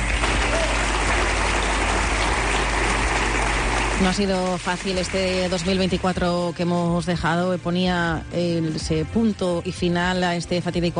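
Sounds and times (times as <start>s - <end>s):
audience ovation applause: 0.0s - 6.0s
speech: 4.0s - 10.9s.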